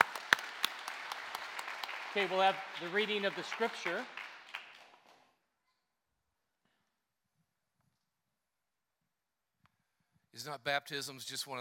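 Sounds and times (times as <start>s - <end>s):
scattered audience claps: 0.0s - 5.3s
speech: 2.2s - 4.2s, 10.4s - 11.5s.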